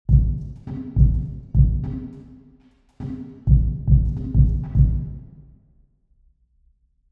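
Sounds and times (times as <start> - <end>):
drum in church: 0.1 - 5.5.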